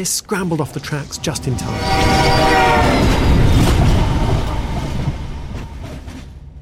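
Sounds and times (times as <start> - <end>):
speech: 0.0 - 3.3
train rumbling past with rattling wheels: 0.6 - 6.6
train horn blast: 1.5 - 4.7.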